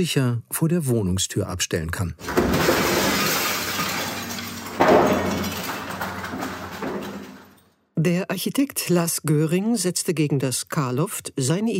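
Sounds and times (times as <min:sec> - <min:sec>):
speech: 0:00.0 - 0:02.7, 0:08.0 - 0:11.7
window pane being smashed: 0:02.2 - 0:07.6
glass shards tinkling: 0:02.6 - 0:07.6.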